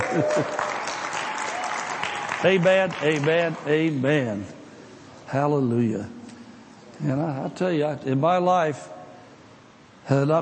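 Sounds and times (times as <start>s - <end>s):
audience clapping: 0.0s - 4.0s
speech: 0.1s - 0.7s, 2.4s - 4.6s, 5.3s - 6.2s, 7.0s - 9.0s, 10.1s - 10.4s.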